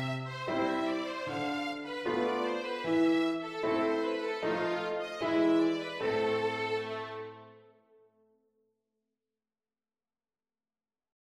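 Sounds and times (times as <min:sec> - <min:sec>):
violin and piano backing track: 0:00.0 - 0:07.7.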